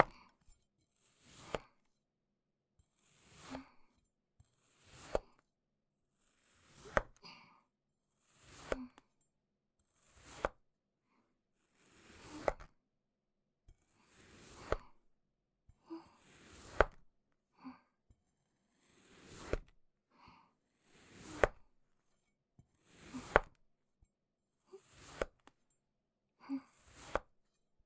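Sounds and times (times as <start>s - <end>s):
cutting sand clay: 1.2s - 1.8s, 3.0s - 3.8s, 4.6s - 5.4s, 6.3s - 7.2s, 8.2s - 9.0s, 10.0s - 10.6s, 11.8s - 12.7s, 14.1s - 15.0s, 16.2s - 17.0s, 18.8s - 19.7s, 21.0s - 21.6s, 22.9s - 23.6s, 24.8s - 25.5s, 26.7s - 27.3s.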